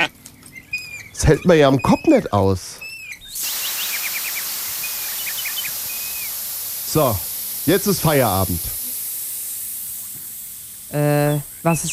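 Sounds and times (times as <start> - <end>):
speech: 1.2 - 2.8, 6.9 - 8.8, 10.9 - 11.9
air hissing from a flat tyre: 3.3 - 11.9.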